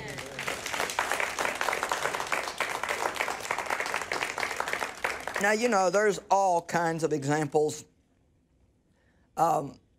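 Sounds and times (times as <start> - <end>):
audience hand clapping: 0.0 - 5.8
speech: 5.4 - 7.9, 9.4 - 9.8.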